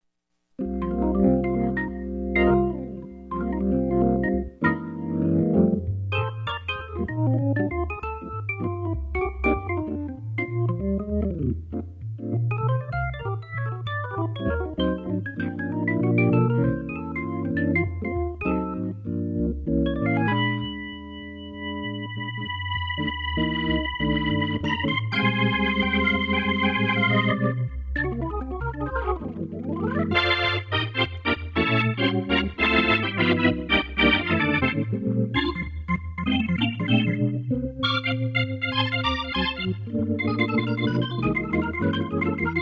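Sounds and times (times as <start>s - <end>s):
groovy music: 0.6s - 42.6s.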